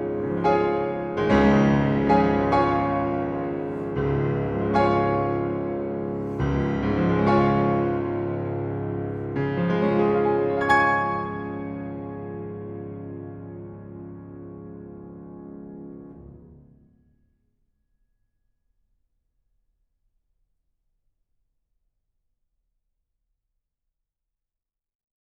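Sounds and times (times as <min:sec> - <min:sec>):
piano prelude in D-flat major: 0:00.0 - 0:17.0.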